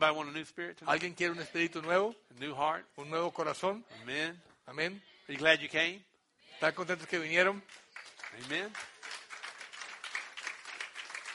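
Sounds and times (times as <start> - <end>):
speech: 0.0 - 8.9
congregation clapping at an evening bilingual church service: 6.7 - 11.3.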